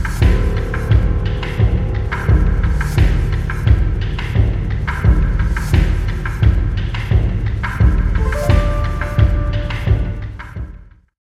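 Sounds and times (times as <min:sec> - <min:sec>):
music beat: 0:00.2 - 0:10.7.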